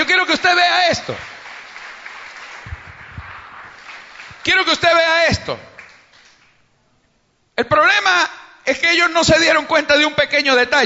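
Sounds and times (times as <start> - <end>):
speech: 0.4 - 1.3, 4.4 - 5.7, 7.6 - 10.8
audience applause: 1.1 - 4.7
low thumps: 2.6 - 3.7.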